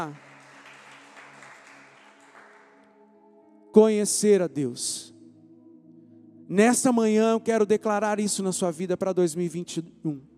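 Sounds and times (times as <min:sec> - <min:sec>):
speech: 0:00.0 - 0:00.3, 0:03.7 - 0:05.1, 0:06.5 - 0:10.3
audience applauding: 0:00.0 - 0:02.9.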